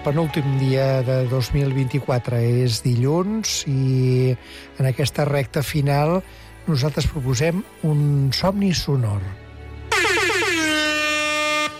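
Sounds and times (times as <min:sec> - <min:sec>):
speech: 0:00.0 - 0:09.4
air horn blast: 0:09.9 - 0:11.7.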